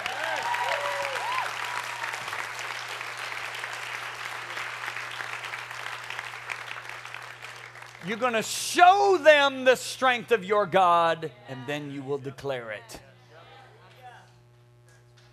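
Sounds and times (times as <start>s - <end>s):
people whooping: 0.0s - 2.5s
audience clapping: 0.0s - 8.9s
speech: 8.0s - 13.1s.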